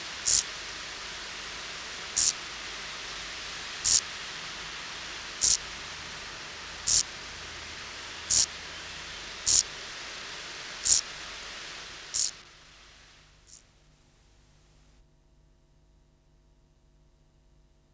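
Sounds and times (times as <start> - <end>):
great green bush-cricket Tettigonia viridissima song: 0.0 - 13.7.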